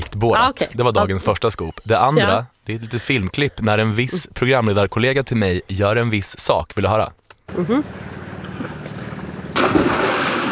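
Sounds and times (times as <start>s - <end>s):
speech: 0.2s - 8.7s
cannonball jump splash into pool: 9.6s - 10.5s.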